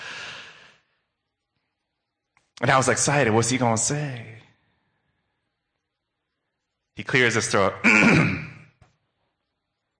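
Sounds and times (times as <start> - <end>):
storyteller voicing a nervous boy's deep breath: 0.0 - 0.9
speech: 2.6 - 4.4, 7.0 - 8.5.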